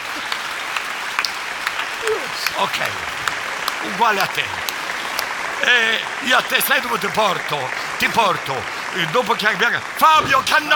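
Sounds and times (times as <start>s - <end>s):
crowd clapping for a woman in the audience: 0.0s - 10.7s
speech: 2.4s - 4.7s, 5.6s - 10.7s.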